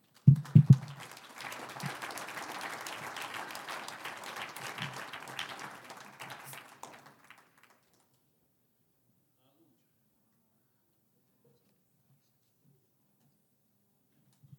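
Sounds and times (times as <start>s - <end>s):
audience applause: 0.0s - 8.0s.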